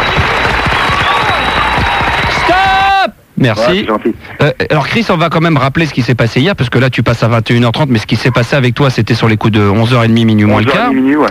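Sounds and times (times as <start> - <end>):
audience applause: 0.0 - 3.0
audience whoops: 0.0 - 3.1
speech: 3.4 - 11.2.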